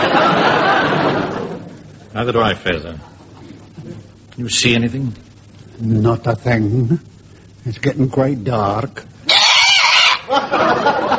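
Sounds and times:
laughter: 0.0s - 1.9s, 10.2s - 11.1s
speech: 2.2s - 3.1s, 4.4s - 9.1s, 10.3s - 11.1s
parrot squawking: 9.3s - 10.3s.

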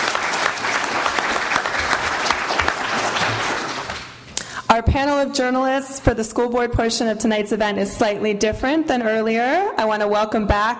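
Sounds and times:
crowd applauding: 0.0s - 4.2s
speech: 4.8s - 10.7s.

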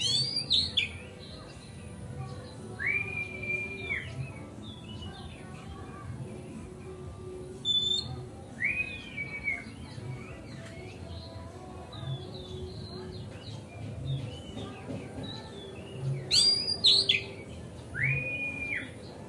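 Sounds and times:
Oriental magpie-robin whistling song: 0.0s - 1.4s, 2.5s - 5.4s, 7.5s - 19.2s.

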